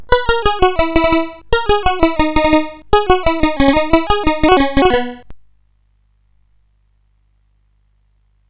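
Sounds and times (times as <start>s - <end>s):
SID CSG8580R5 chip music: 0.0s - 5.4s.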